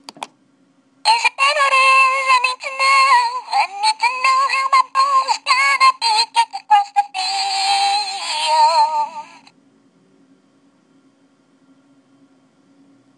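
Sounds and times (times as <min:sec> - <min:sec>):
person singing freestyle song on a voice memo: 0:01.1 - 0:09.5.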